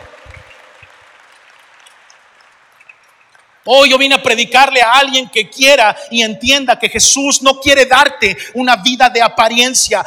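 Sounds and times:
audience applauding: 0.0 - 3.3
speech: 3.6 - 10.0.

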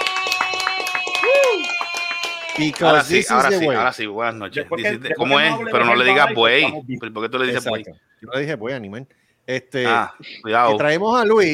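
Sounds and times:
audience applause: 0.0 - 3.4
speech: 2.6 - 11.5.

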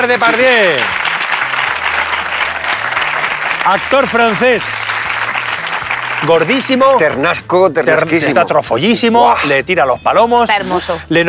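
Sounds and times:
speech: 0.0 - 1.0, 3.6 - 5.0, 6.2 - 11.2
crowd applause: 0.0 - 7.2.

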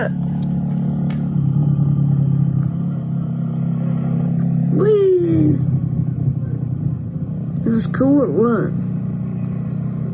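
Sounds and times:
speech: 0.0 - 0.4, 7.7 - 8.9
motorcycle engine drone while riding with kids: 0.0 - 10.1.

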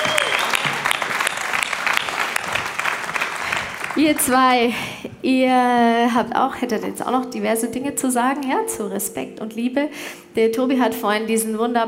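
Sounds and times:
audience applause: 0.0 - 4.4
speech: 4.0 - 11.8.

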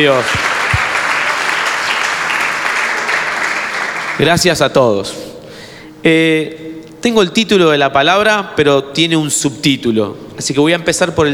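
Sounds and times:
speech: 0.0 - 0.5, 4.2 - 5.2, 6.0 - 11.3
loud crowd applause: 0.0 - 4.3.

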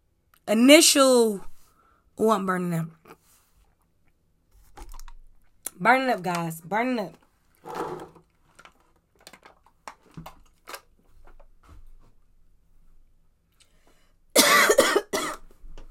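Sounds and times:
speech: 0.5 - 1.5, 2.2 - 3.1, 5.8 - 7.8
person coughing after choking on water: 14.4 - 15.4.

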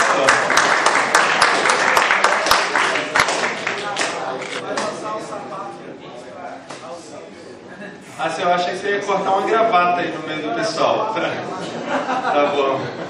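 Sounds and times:
audience applause: 0.0 - 4.6
speech: 8.2 - 13.0
laughter: 11.4 - 13.0.

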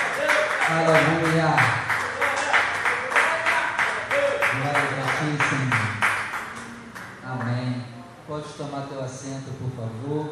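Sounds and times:
audience applause: 0.0 - 7.2
speech: 0.7 - 1.9, 8.4 - 10.3.

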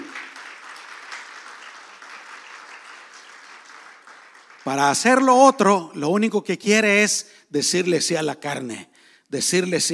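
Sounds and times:
audience applause: 0.0 - 5.3
speech: 4.6 - 9.9.

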